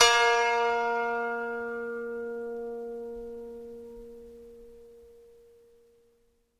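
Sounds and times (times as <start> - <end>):
koto: 0.0 - 4.6.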